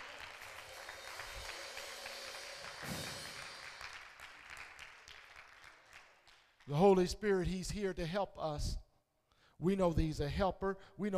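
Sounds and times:
audience clapping hands: 0.0s - 7.0s
speech: 6.7s - 8.8s, 9.6s - 11.1s.

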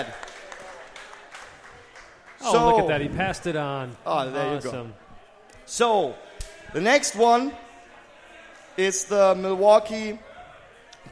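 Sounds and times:
speech: 0.0s - 0.2s, 2.5s - 5.0s, 5.7s - 7.6s, 8.8s - 10.3s
audience applause: 0.0s - 3.0s.

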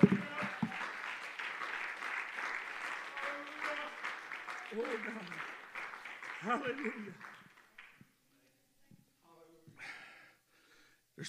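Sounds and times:
people clapping in praise: 0.0s - 8.3s
speech: 4.8s - 5.4s, 6.4s - 7.3s.

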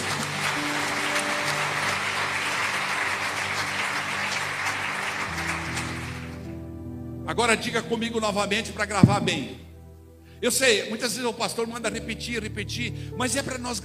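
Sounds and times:
audience applauding: 0.0s - 6.6s
sustained organ or keyboard notes: 0.2s - 13.3s
speech: 7.3s - 9.6s, 10.4s - 13.8s.

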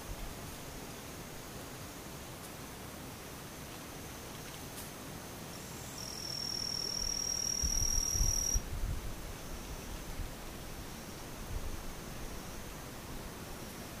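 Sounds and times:
daytime insects buzzing: 0.0s - 13.9s
piercing insect trill: 5.5s - 8.6s.

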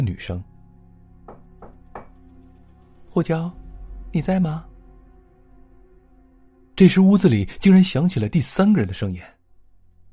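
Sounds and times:
speech: 0.0s - 0.5s, 3.1s - 4.7s, 6.8s - 9.4s
knocking on a door: 1.2s - 3.1s.

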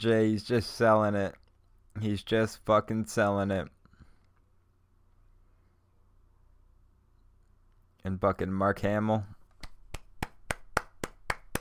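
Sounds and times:
speech: 0.0s - 1.4s, 2.0s - 3.8s, 8.0s - 9.4s
clapping: 9.6s - 11.5s.

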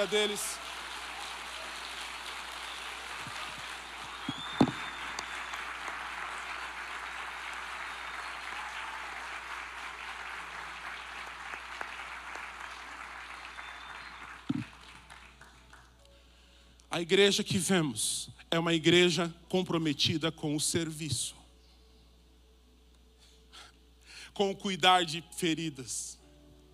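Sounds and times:
speech: 0.0s - 0.7s, 17.0s - 21.4s, 24.4s - 26.2s
audience applause: 0.0s - 15.9s.

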